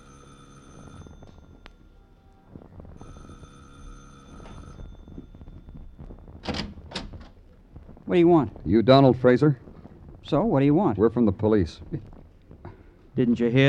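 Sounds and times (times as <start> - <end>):
doorbell ringing: 0.0 - 2.2, 3.0 - 6.5
speech: 8.1 - 9.6, 10.3 - 12.1, 13.2 - 13.6.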